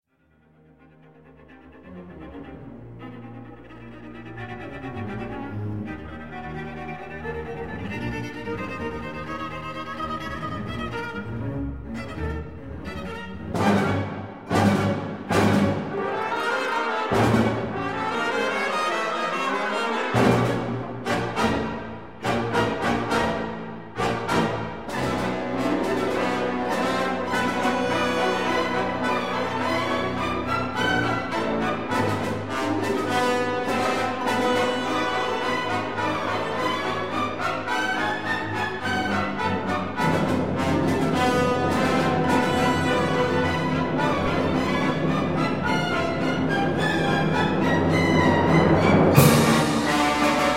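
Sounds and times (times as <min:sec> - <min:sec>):
viola concerto with orchestra moderato assai: 0:00.0 - 0:50.5.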